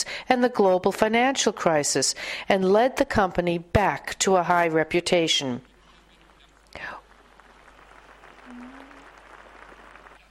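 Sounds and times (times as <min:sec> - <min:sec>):
speech: 0:00.0 - 0:05.7, 0:06.8 - 0:07.0
round of applause: 0:05.7 - 0:10.2.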